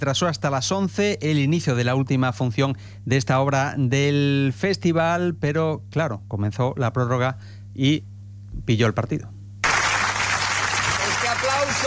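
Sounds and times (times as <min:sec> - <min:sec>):
speech: 0:00.0 - 0:09.4
audience applause at the Festival de Mérida after Timón de Atenas: 0:09.6 - 0:11.8.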